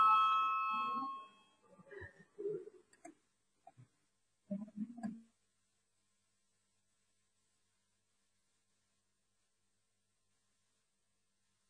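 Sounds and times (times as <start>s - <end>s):
electric voting bell ringing in the Latvian parliament chamber: 0.0s - 1.4s.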